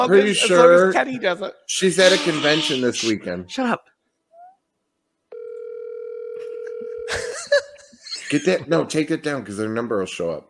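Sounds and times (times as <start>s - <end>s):
speech: 0.0s - 3.9s, 8.3s - 10.4s
telephone line tone while calling someone: 5.3s - 7.1s
laughter: 7.1s - 8.6s.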